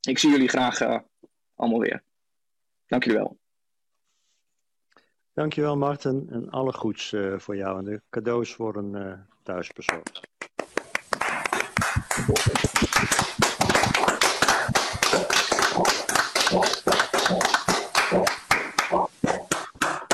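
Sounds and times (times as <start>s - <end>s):
speech: 0.1s - 2.1s, 2.9s - 3.4s, 5.4s - 10.2s, 12.2s - 13.2s
sustained applause from a group: 10.1s - 20.1s.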